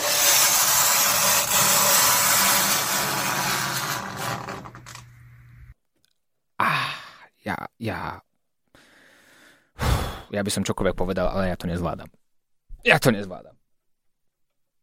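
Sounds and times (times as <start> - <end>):
fingernail scraping across chalkboard: 0.0 - 5.0
speech: 7.4 - 8.2, 10.3 - 12.2, 12.8 - 13.6.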